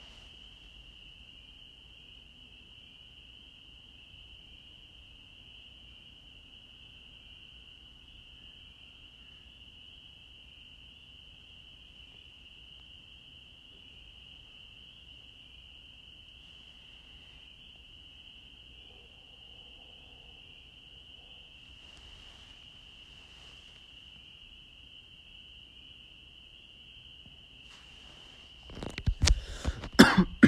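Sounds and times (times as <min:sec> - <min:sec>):
frogs trilling in chorus in Holliston, Massachusetts: 0:00.0 - 0:30.4.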